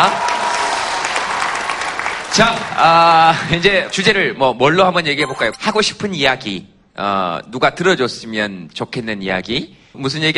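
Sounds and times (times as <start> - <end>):
audience applause: 0.0 - 3.0
speech: 2.4 - 10.3.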